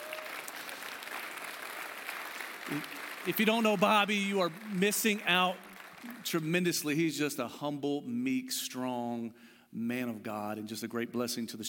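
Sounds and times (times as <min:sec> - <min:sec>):
crowd round of applause: 0:00.0 - 0:06.9
speech: 0:02.7 - 0:11.6.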